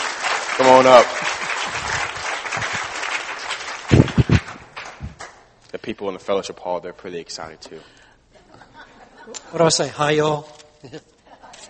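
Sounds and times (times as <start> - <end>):
audience clapping for speaker: 0.0 - 5.6
speech: 0.6 - 1.4, 5.9 - 8.0, 9.3 - 11.1.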